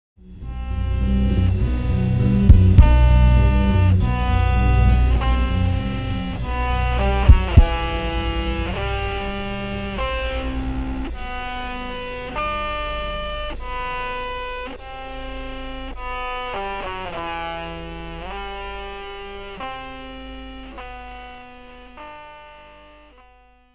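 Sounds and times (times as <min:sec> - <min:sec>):
microsynth: 0:00.2 - 0:16.0.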